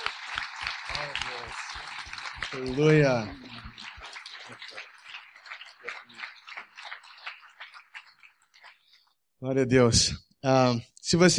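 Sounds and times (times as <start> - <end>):
audience hand clapping: 0.0 - 9.0
speech: 1.0 - 3.5, 9.4 - 11.3.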